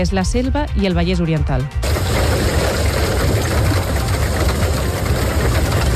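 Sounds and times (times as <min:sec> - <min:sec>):
speech: 0:00.0 - 0:02.2
heavy rain and hail: 0:01.8 - 0:05.9.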